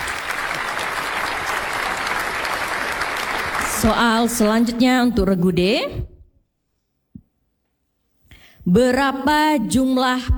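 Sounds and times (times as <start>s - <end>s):
audience applause at a quiz competition: 0.0s - 4.7s
speech: 3.8s - 6.1s, 8.7s - 10.3s.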